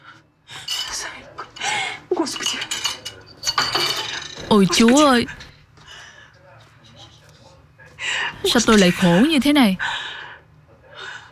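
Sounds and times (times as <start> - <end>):
dishes and cutlery clattering as a bowl of soup spills: 0.6 - 5.6
speech: 2.2 - 2.7, 4.5 - 5.4, 8.5 - 9.9.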